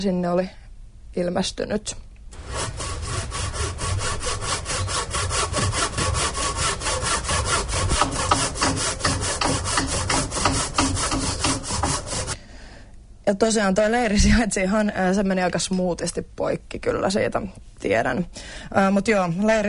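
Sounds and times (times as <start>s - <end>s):
speech: 0.0s - 0.6s, 1.2s - 2.1s, 13.3s - 19.6s
sawing wood during carpentry work: 2.4s - 12.4s.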